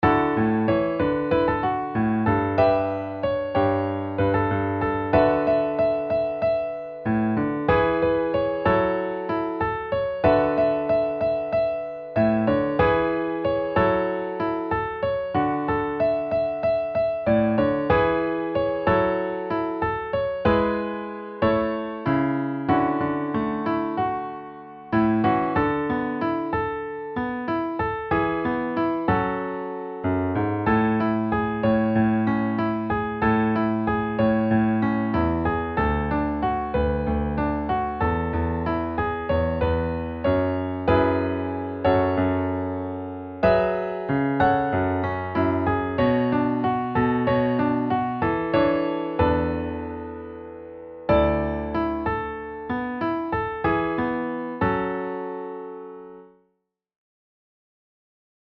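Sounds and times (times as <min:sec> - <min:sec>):
piano: 0:00.0 - 0:56.5.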